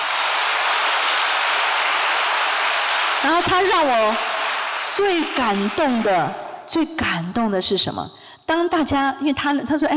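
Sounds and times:
audience applause: 0.0s - 6.7s
speech: 3.2s - 4.3s, 5.0s - 9.9s.

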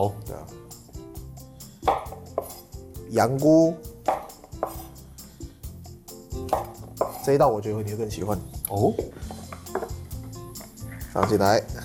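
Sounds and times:
speech: 0.0s - 0.3s, 3.1s - 3.9s, 7.2s - 9.2s, 11.2s - 11.7s
knife chopping shiitake mushrooms on a cutting board: 1.8s - 2.7s, 4.1s - 4.9s, 6.4s - 7.3s.

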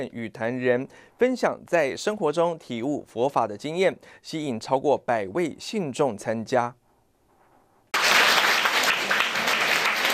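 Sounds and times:
speech: 0.0s - 6.8s
audience applause: 8.0s - 10.1s.

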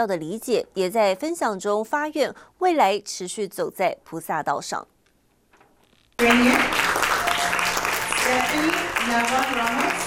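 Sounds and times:
speech: 0.0s - 4.9s, 8.3s - 10.0s
warm applause: 6.2s - 10.0s.

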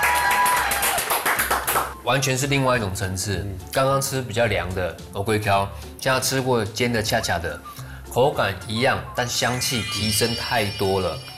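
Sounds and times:
rapid hand clapping: 0.0s - 2.0s
speech: 2.1s - 11.3s.

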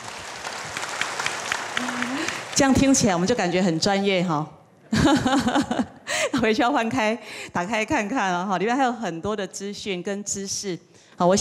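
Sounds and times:
warm audience applause at a talk on Buddhist sutras: 0.0s - 3.4s
speech: 2.6s - 11.3s
laughter: 4.9s - 6.0s.

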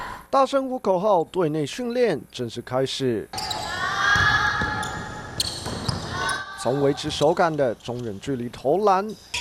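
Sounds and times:
speech: 0.3s - 3.4s, 6.6s - 9.3s
basketball bouncing on a court during women's basketball practice: 4.0s - 6.4s.

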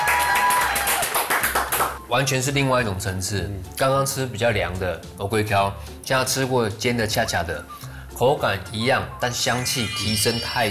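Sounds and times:
person clapping hands: 0.0s - 2.0s
speech: 2.1s - 10.6s.

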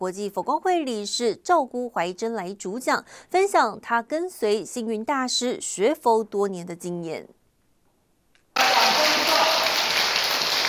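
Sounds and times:
speech: 0.0s - 7.4s
warm applause: 8.6s - 10.6s.

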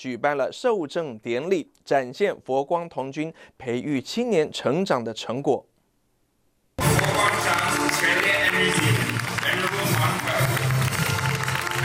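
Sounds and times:
speech: 0.0s - 5.7s
crowd clapping in welcome: 6.8s - 11.8s.

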